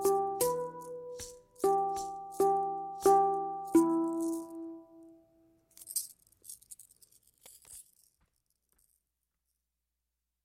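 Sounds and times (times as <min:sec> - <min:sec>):
dark hang drum music: 0:00.0 - 0:04.7.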